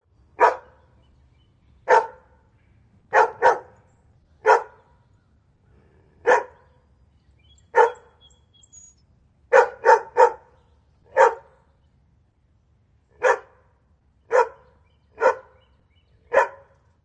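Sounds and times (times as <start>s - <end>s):
Golden Retriever barking: 0.4s - 0.8s, 1.9s - 2.3s, 3.1s - 3.8s, 4.4s - 5.0s, 6.2s - 6.7s, 7.7s - 8.2s, 9.5s - 11.6s, 13.2s - 13.6s, 14.3s - 15.6s, 16.3s - 16.8s.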